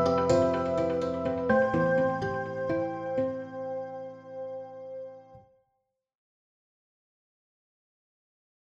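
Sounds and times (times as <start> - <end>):
modelled piano playing: 0.0 - 5.3.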